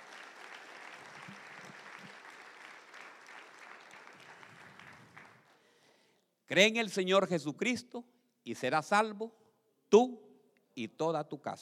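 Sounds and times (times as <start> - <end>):
audience applause: 0.0 - 5.5
speech: 6.5 - 10.2, 10.8 - 11.6.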